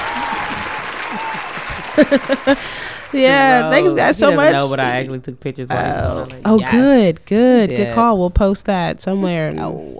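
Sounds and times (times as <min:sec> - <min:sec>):
audience applause: 0:00.0 - 0:03.4
laughter: 0:00.0 - 0:04.7
speech: 0:02.0 - 0:09.9.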